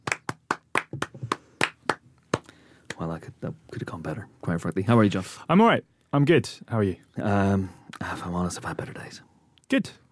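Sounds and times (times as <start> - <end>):
applause: 0.0 - 2.0
speech: 3.0 - 10.0.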